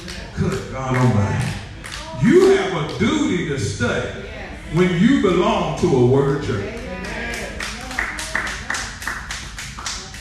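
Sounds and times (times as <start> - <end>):
group clapping in unison: 0.0 - 3.2, 6.6 - 10.1
murmur of voices: 0.0 - 10.1
speech: 0.4 - 1.6, 2.2 - 6.8.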